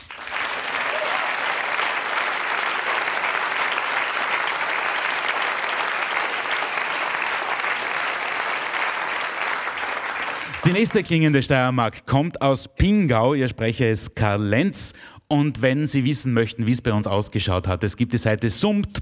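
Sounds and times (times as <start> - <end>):
audience applause: 0.0 - 11.2
speech: 10.7 - 18.9.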